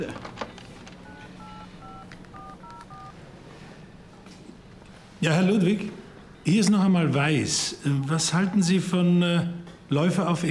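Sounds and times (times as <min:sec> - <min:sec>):
phone keypad dual-tone beeps: 0:00.0 - 0:03.2
speech: 0:05.2 - 0:10.4.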